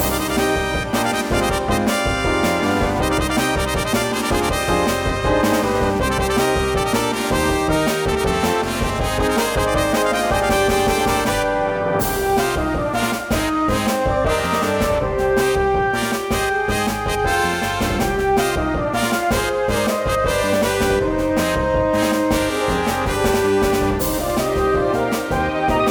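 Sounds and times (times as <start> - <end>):
battle music: 0.0 - 25.8.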